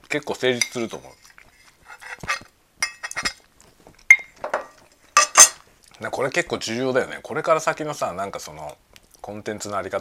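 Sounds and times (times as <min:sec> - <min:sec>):
speech: 0:00.1 - 0:01.4, 0:06.0 - 0:09.9
cutlery clinking and scraping on a plate while eating: 0:02.0 - 0:03.4, 0:04.0 - 0:05.6.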